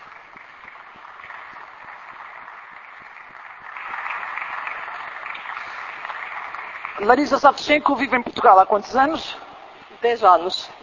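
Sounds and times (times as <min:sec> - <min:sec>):
crowd clapping: 0:00.0 - 0:08.3
speech: 0:07.0 - 0:09.4, 0:10.0 - 0:10.8.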